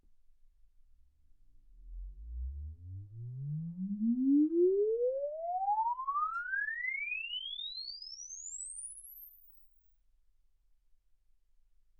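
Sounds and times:
exponential sine sweep from 10 Hz to 24 kHz: 0:01.9 - 0:09.7.

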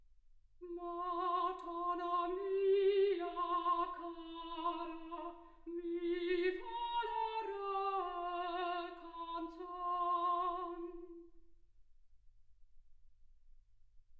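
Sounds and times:
soprano singing: 0:00.6 - 0:11.4.

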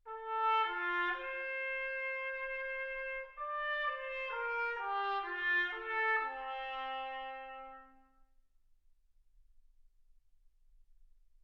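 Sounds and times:
trumpet: 0:00.0 - 0:08.4.

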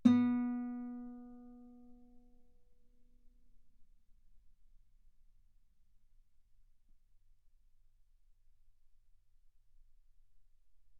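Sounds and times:
guitar note B3: 0:00.0 - 0:01.4.

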